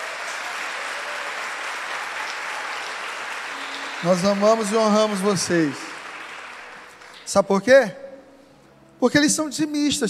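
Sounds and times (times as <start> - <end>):
audience applause: 0.0 - 7.2
speech: 4.0 - 5.8, 7.3 - 8.0, 9.0 - 10.0.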